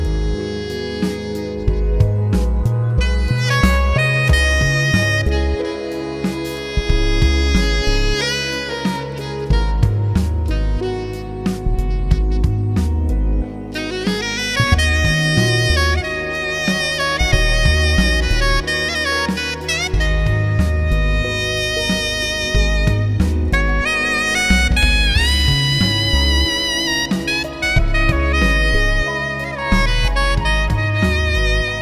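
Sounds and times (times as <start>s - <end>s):
soprano saxophone: 0.0s - 31.7s.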